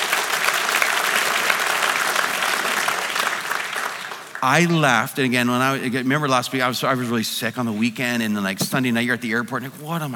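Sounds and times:
audience applause: 0.0s - 4.8s
speech: 4.4s - 10.1s.

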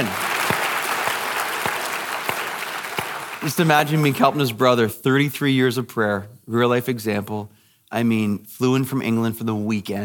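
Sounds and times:
congregation applauding during a church service: 0.0s - 4.5s
speech: 3.4s - 10.0s.

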